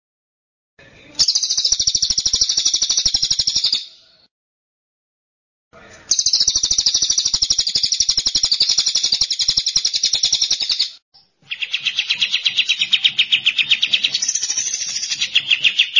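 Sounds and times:
bird song: 0:01.0 - 0:04.3, 0:05.8 - 0:15.9.

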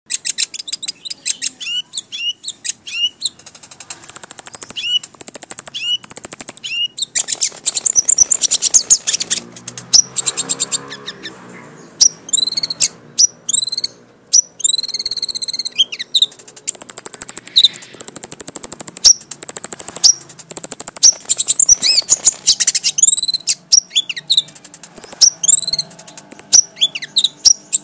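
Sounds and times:
white-flanked sunbird singing: 0:00.1 - 0:27.8.

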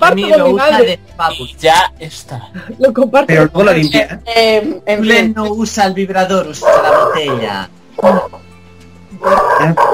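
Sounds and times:
speech: 0:00.1 - 0:08.4, 0:09.2 - 0:09.9
dog barking: 0:06.6 - 0:07.4.

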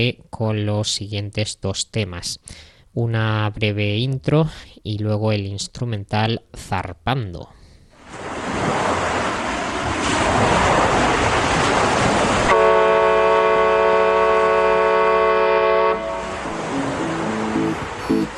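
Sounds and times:
speech: 0:00.0 - 0:08.3
Mediterranean Sea waves at the harbour of Motril Spain: 0:08.0 - 0:18.3
long even horn blast at the harbour: 0:12.5 - 0:18.3.

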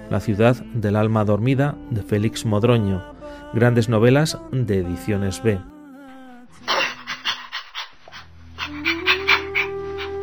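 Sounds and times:
speech: 0:00.1 - 0:05.7
dog sniffing: 0:06.6 - 0:10.2.

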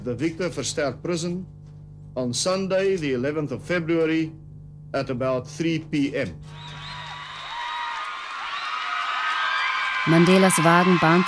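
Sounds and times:
speech: 0:00.0 - 0:01.6, 0:02.2 - 0:06.8, 0:10.0 - 0:11.2
crowd cheering at Nelson Mandela's release: 0:06.5 - 0:11.2.

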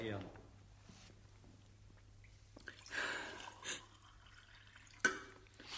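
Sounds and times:
speech: 0:00.0 - 0:00.4
water poured into a glass for a witness in a courtroom: 0:02.6 - 0:05.6.

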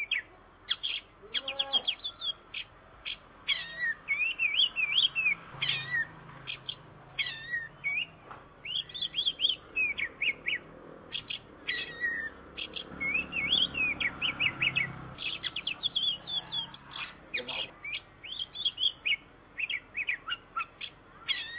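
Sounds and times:
Oriental magpie-robin song of fluid warbled whistles: 0:00.0 - 0:21.5.

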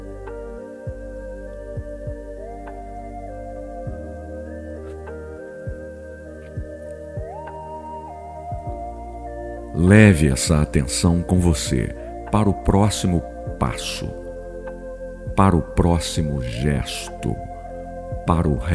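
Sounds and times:
heartbeat: 0:00.9 - 0:01.2, 0:01.8 - 0:02.5, 0:03.8 - 0:04.1, 0:05.7 - 0:06.0, 0:06.6 - 0:07.6, 0:08.5 - 0:09.0, 0:13.4 - 0:13.8, 0:15.3 - 0:16.3, 0:18.1 - 0:18.7
speech: 0:09.8 - 0:14.2, 0:15.4 - 0:17.5, 0:18.3 - 0:18.7.

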